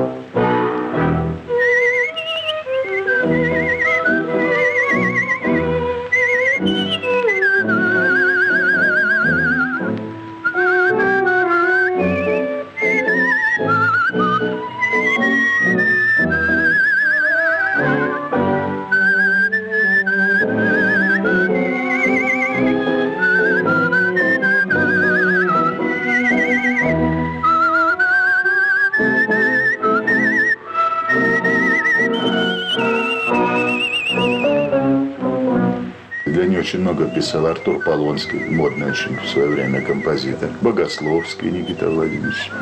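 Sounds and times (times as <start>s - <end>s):
orchestral accompaniment: 0.0s - 42.6s
whistled imitation of nightingale trills: 1.5s - 34.8s, 36.0s - 42.6s
speech: 37.2s - 42.6s.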